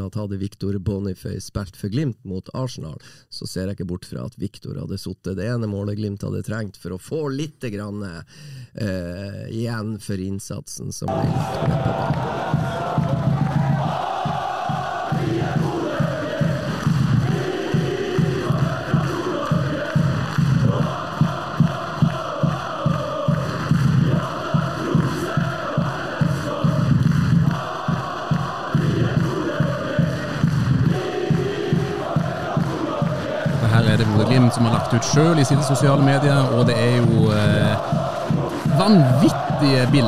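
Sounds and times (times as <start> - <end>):
speech: 0.0 - 12.8, 35.0 - 38.0, 38.8 - 40.0
large crowd of football fans singing a chant: 11.1 - 40.0.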